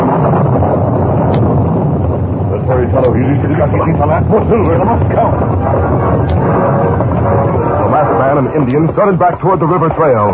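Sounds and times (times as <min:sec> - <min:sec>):
lightning crackling: 0:00.0 - 0:10.3
strong wind of a storm: 0:00.0 - 0:10.3
speech: 0:03.2 - 0:07.0, 0:08.3 - 0:10.3.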